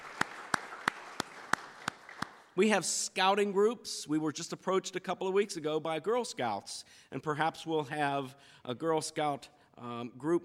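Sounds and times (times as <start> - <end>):
audience applause: 0.0 - 2.5
speech: 2.6 - 10.4.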